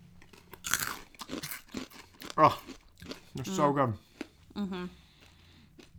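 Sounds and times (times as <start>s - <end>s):
person crunching salt and vinegar snacks: 0.2s - 4.3s
speech: 2.4s - 2.7s, 3.4s - 5.0s.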